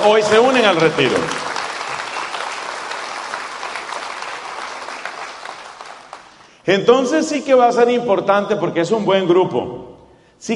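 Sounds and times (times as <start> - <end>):
speech: 0.0 - 1.5, 6.6 - 10.5
audience applause: 0.0 - 6.5.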